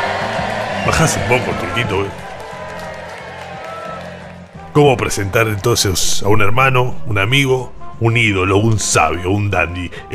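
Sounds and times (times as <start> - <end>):
audience applause: 0.0 - 4.8
speech: 0.8 - 2.3, 4.8 - 10.1.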